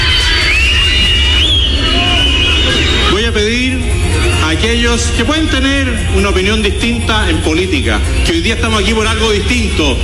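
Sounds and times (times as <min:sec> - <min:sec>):
shrill whistling from the crowd: 0:00.0 - 0:03.2
crowd booing at the president's opening speech in Concepción: 0:00.0 - 0:03.3
speech: 0:04.6 - 0:10.0.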